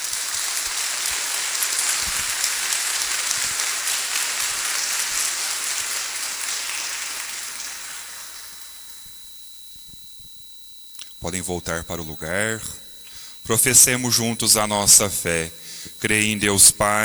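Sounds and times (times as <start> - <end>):
audience applause: 0.0 - 8.8
speech: 11.2 - 12.8, 13.5 - 17.0.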